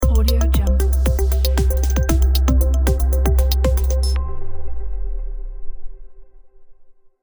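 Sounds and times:
motivational logo music: 0.0s - 4.2s.

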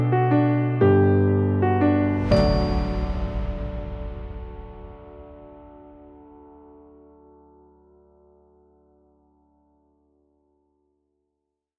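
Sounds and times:
Christmas piano music: 0.0s - 8.7s.

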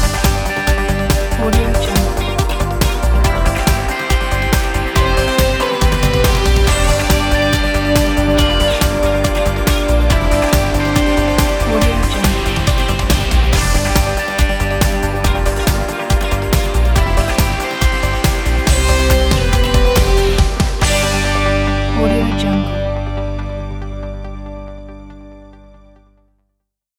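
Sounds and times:
energetic news and sports music: 0.0s - 25.8s.

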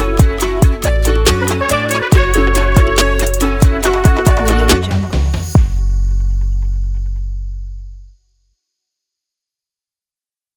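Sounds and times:
Latin beat: 0.0s - 7.3s.

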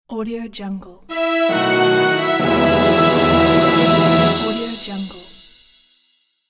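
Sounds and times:
awards logo sting music: 1.1s - 5.4s.

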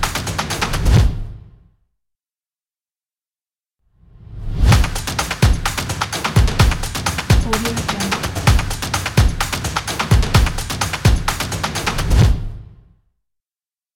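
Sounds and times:
symphony percussion: 4.6s - 12.4s.

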